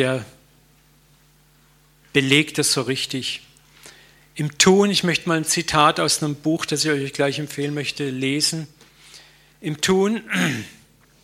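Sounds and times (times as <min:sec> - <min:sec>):
speech: 0:00.0 - 0:00.4, 0:02.1 - 0:03.5, 0:04.4 - 0:08.8, 0:09.6 - 0:10.8
person sneezing: 0:10.3 - 0:10.9.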